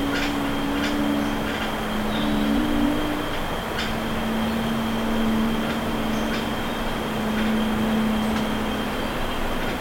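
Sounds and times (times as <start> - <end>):
bird calls: 0.0 - 9.7.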